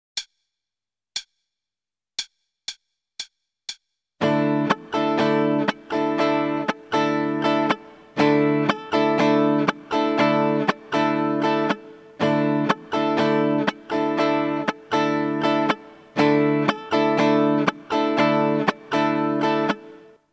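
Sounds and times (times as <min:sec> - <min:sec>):
starter guitar rhythm: 0:04.2 - 0:20.2.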